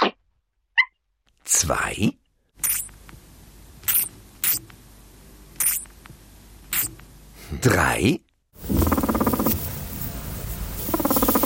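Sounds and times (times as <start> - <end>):
speech: 1.6 - 2.2, 7.6 - 8.2
guinea pig purring when displeased: 8.6 - 10.0, 10.8 - 11.4.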